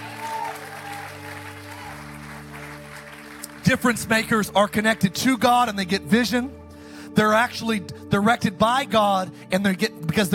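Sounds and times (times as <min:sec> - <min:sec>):
audience clapping: 0:00.0 - 0:04.8
speech: 0:03.6 - 0:06.6, 0:07.2 - 0:10.3.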